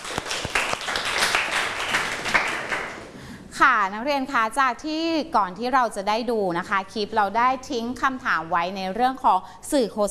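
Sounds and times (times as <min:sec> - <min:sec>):
students clapping: 0:00.0 - 0:03.2
speech: 0:03.6 - 0:10.0.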